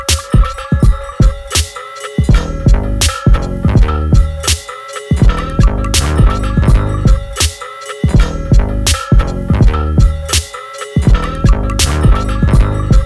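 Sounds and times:
ending chime: 0.0s - 13.0s.

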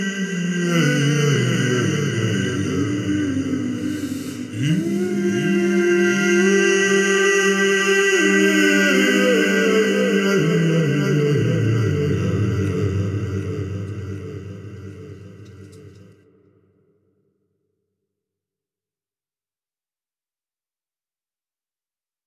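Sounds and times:
a cappella singing: 0.0s - 16.1s.

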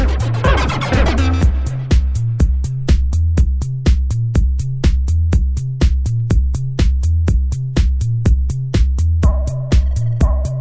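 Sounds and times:
techno bass tilt: 0.0s - 10.5s.

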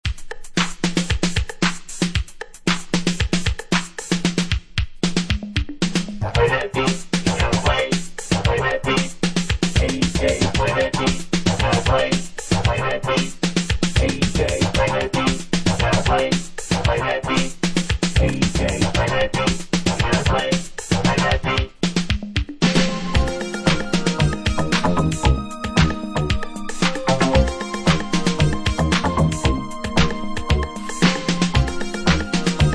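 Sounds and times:
instrumental music: 0.0s - 32.7s.

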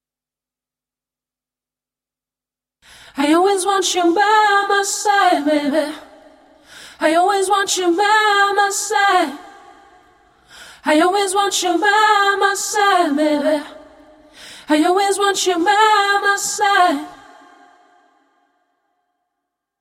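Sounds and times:
a cappella singing: 3.1s - 18.4s.

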